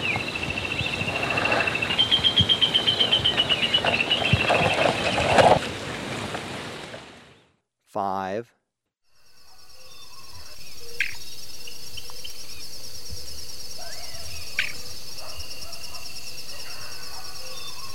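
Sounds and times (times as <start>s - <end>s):
Russet-crowned Crake calling: 0.0s - 5.6s, 9.8s - 13.0s, 13.6s - 17.4s.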